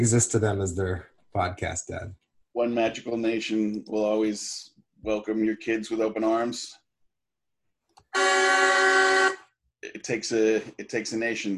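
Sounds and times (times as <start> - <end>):
speech: 0.0 - 6.8, 8.1 - 11.5
semi-truck air horn from soundboard: 8.1 - 9.5.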